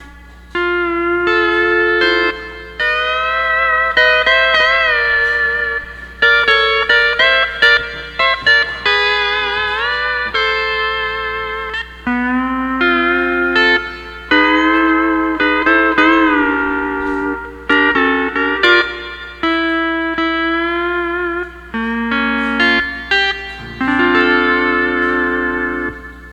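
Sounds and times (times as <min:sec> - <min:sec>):
12-string lap guitar playing: 0:00.0 - 0:26.3.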